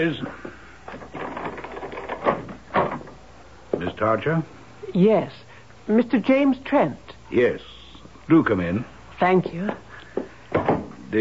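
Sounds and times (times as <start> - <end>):
speech: 0.0 - 0.5, 4.0 - 9.8
door being opened: 0.9 - 3.2.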